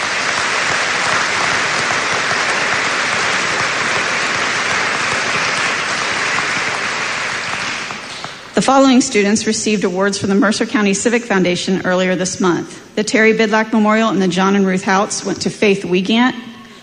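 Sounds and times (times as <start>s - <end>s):
audience applause: 0.0s - 8.6s
speech: 8.6s - 16.5s.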